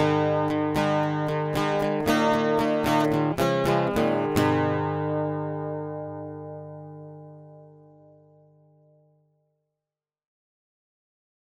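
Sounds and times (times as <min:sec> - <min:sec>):
acoustic music: 0:00.0 - 0:09.0.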